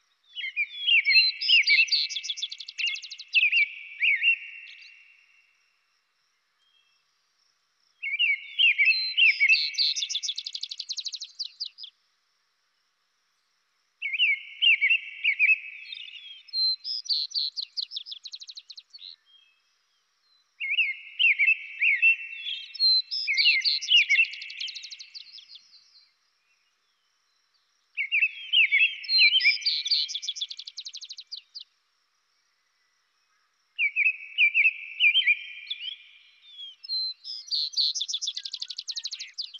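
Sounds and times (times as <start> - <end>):
robin singing: 0.0 - 5.1, 8.0 - 11.9, 14.0 - 19.6, 20.6 - 26.1, 27.9 - 31.7, 33.8 - 39.5.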